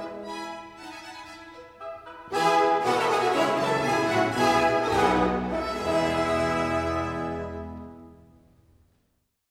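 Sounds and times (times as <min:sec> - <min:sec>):
choir singing: 0:02.3 - 0:07.7.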